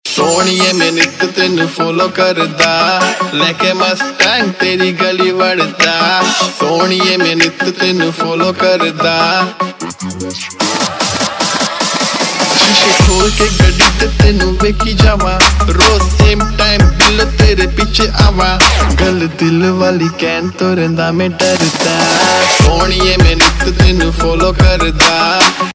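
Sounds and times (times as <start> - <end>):
Punjabi pop ringtone: 0.1 - 25.7.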